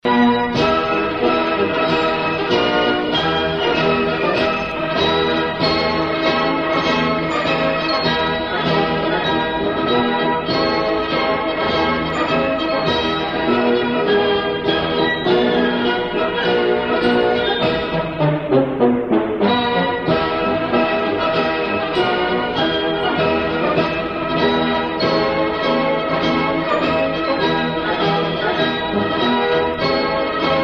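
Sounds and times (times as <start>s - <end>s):
German military march: 0.0s - 30.6s.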